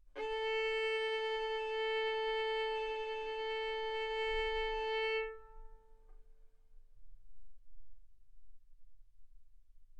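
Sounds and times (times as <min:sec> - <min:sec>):
violin arco on A string: 0:00.0 - 0:06.1.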